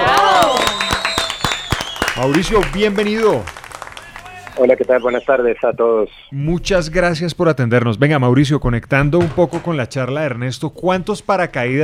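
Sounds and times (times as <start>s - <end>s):
audience applause: 0.0s - 5.2s
speech: 2.2s - 3.6s, 4.6s - 11.8s.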